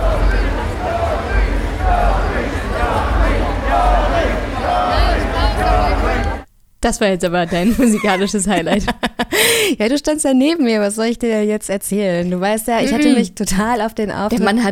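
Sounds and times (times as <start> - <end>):
concert crowd murmuring and chattering: 0.0 - 6.5
louder calls: 0.0 - 6.5
speech: 6.8 - 14.7
laughter: 7.5 - 9.5.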